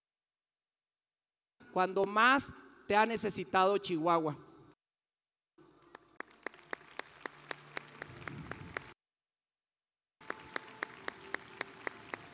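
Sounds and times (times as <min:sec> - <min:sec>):
speech: 0:01.7 - 0:04.4
audience applause: 0:05.6 - 0:09.0, 0:10.2 - 0:12.3.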